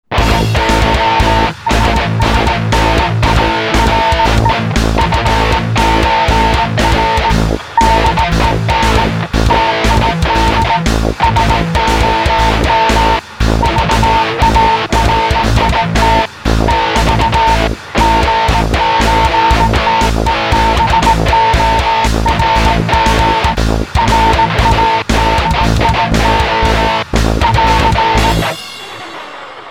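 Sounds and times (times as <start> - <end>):
morse code beeps: 0.3 - 28.9.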